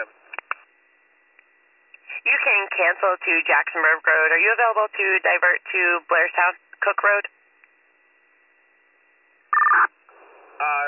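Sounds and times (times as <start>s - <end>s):
faint radio hiss: 0.0s - 10.8s
speech: 2.7s - 7.4s, 10.6s - 10.8s
dispatch paging tone beep: 9.5s - 9.9s.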